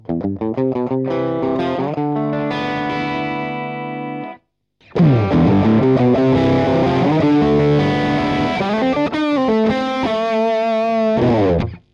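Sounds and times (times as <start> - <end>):
distortion: 0.0 - 11.9.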